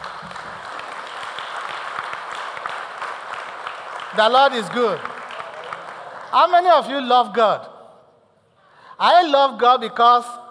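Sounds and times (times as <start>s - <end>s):
audience clapping: 0.0s - 7.2s
speech: 4.2s - 5.1s, 6.3s - 7.7s, 9.0s - 10.4s.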